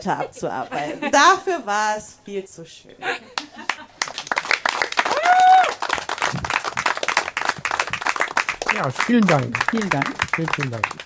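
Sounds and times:
speech: 0.0 - 3.4, 8.8 - 11.0
audience applause: 3.6 - 11.0.

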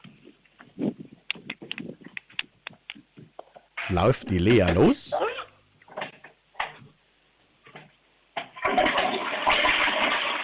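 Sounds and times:
speech: 3.9 - 5.3
loud toilet flush: 8.6 - 10.4.

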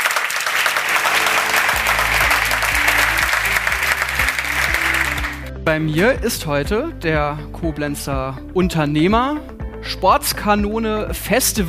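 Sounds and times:
audience applause: 0.0 - 5.6
speech: 5.7 - 11.6.

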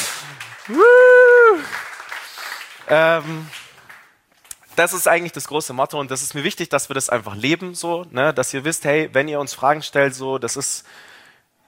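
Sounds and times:
audience applause: 0.0 - 4.1
speech: 0.7 - 1.0, 2.9 - 3.6, 4.8 - 11.2.

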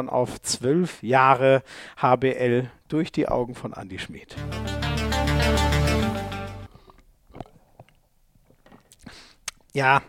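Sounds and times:
speech: 0.0 - 4.8, 9.8 - 10.0
short burst of music: 4.4 - 6.7
person sipping and swallowing AG1 greens supplement drink: 6.7 - 9.6.

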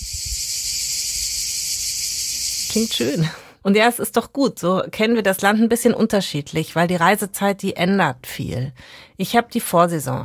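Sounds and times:
cicadas chirping in summer meadow: 0.0 - 3.4
speech: 2.8 - 10.2.

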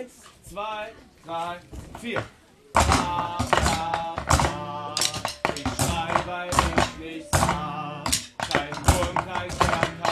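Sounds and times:
speech: 0.0 - 4.7, 6.3 - 7.7
children's drumming performance: 2.8 - 10.0.

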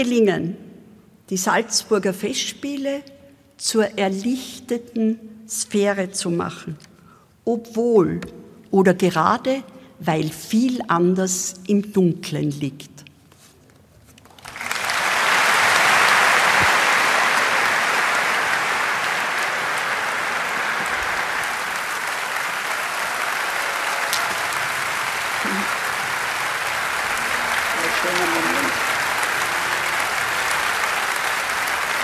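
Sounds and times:
speech: 0.0 - 0.6, 1.3 - 13.0
long applause and standing ovation: 14.2 - 32.0.

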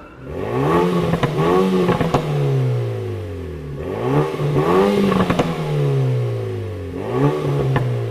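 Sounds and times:
small car engine revving: 0.0 - 8.0
sharp crackling exhaust pops: 0.9 - 2.9, 4.2 - 6.3, 6.9 - 8.0.

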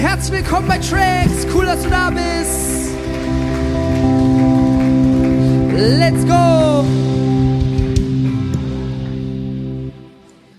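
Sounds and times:
speech: 0.0 - 3.7, 5.8 - 7.2
audience applause: 0.0 - 9.2.

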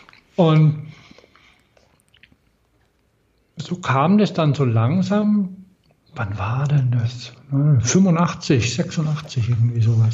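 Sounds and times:
person chewing an old waffle: 0.0 - 3.3
speech: 0.4 - 0.9, 3.7 - 5.6, 6.2 - 10.1.

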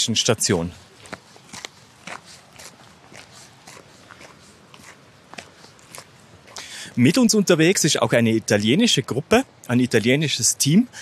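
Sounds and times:
speech: 0.0 - 0.9, 7.0 - 11.0
footsteps of hikers crossing a glacier moraine in a glacier valley: 0.0 - 7.2.

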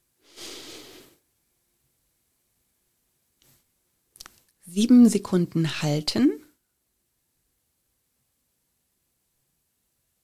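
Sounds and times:
faint sniff: 0.2 - 1.2
slow calm inhalation through the nose during a guided breathing exercise: 0.2 - 1.2
speech: 4.7 - 6.4.

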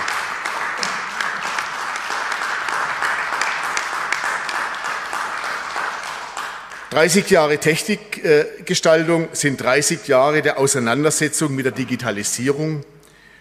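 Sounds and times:
crowd applause: 0.0 - 7.3
speech: 7.0 - 13.0.

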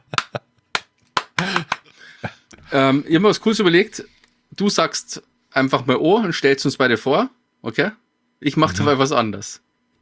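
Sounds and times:
hand clapping in front of a camera: 0.0 - 1.9
speech: 2.7 - 9.7.

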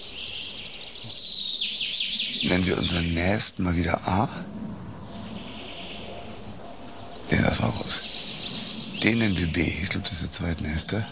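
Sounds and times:
birds counter-singing: 0.0 - 11.1
speech: 2.4 - 4.6, 7.6 - 8.1, 9.0 - 11.1.

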